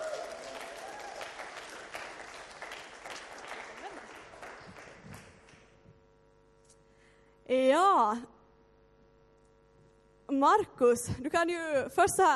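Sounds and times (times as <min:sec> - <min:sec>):
audience applause: 0:00.0 - 0:05.8
speech: 0:07.5 - 0:08.3, 0:10.4 - 0:12.3.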